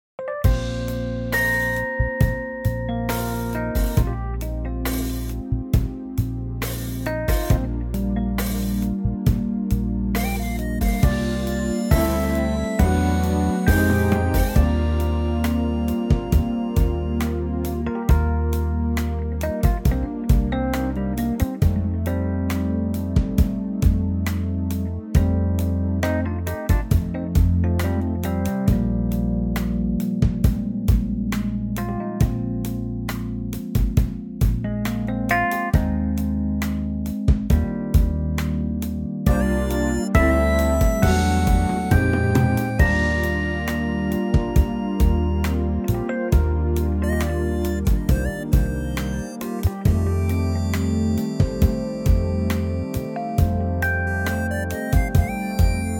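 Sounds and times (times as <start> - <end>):
music groove in E flat: 0.4 - 55.9.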